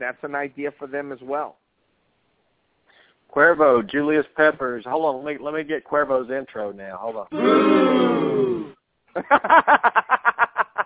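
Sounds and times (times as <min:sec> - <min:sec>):
speech: 0:00.0 - 0:01.7, 0:03.3 - 0:10.2
crowd booing: 0:07.3 - 0:08.8
rhythmic choppy bursts of voices: 0:07.3 - 0:08.8.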